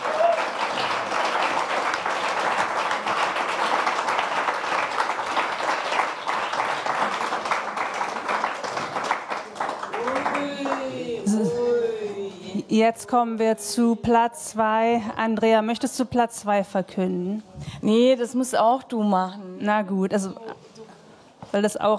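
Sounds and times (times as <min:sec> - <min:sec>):
audience applause: 0:00.0 - 0:12.3
speech: 0:12.8 - 0:20.4, 0:21.5 - 0:21.9.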